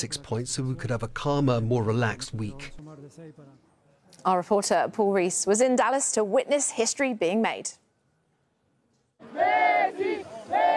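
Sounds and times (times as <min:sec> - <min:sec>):
speech: 0:00.0 - 0:07.8
stadium crowd of football fans roaring: 0:09.2 - 0:10.7.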